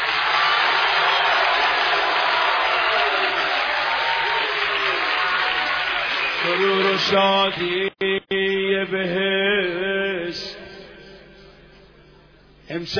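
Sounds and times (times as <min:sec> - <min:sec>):
audience clapping hands: 0:00.0 - 0:07.9
speech: 0:06.6 - 0:09.2, 0:12.8 - 0:12.9.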